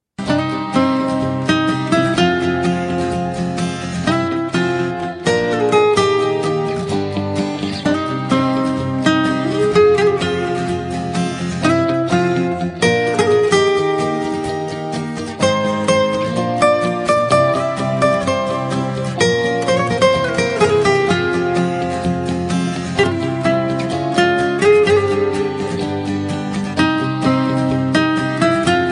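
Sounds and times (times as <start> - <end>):
Nokia E7 guitar ringtone: 0.2 - 28.8.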